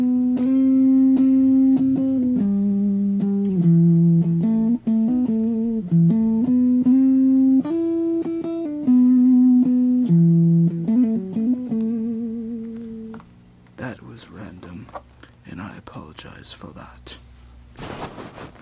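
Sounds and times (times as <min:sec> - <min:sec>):
plucking: 0:00.0 - 0:13.8.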